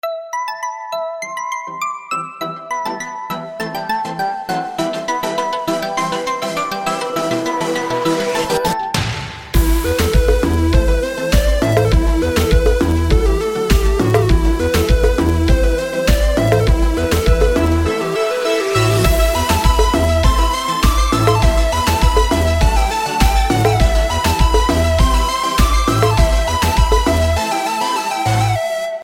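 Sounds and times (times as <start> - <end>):
electronic music: 0.8 - 29.0.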